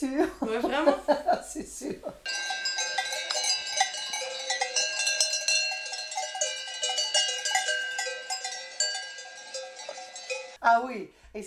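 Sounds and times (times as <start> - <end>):
laughter: 0.0 - 2.3
speech: 0.0 - 2.4, 10.7 - 11.4
cow bells clanking and ringing: 2.2 - 10.6.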